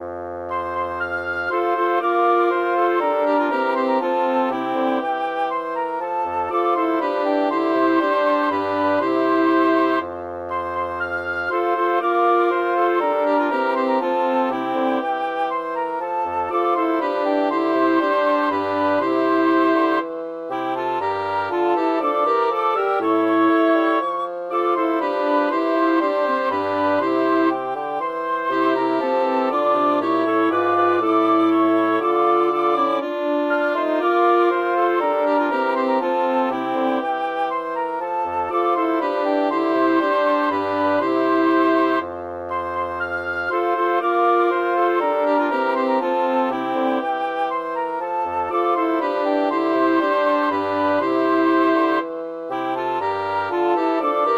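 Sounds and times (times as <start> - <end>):
woodwind quintet playing a chorale: 0.0 - 54.3.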